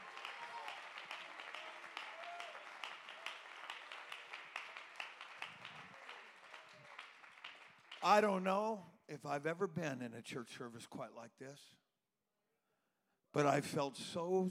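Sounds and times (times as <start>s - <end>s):
audience clapping hands: 0.0s - 8.6s
speech: 8.0s - 11.8s, 13.3s - 14.4s.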